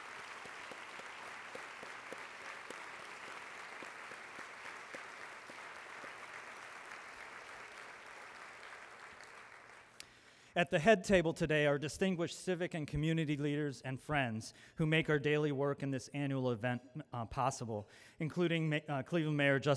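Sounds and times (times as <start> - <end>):
sustained audience applause: 0.0 - 10.0
speech: 10.6 - 19.7.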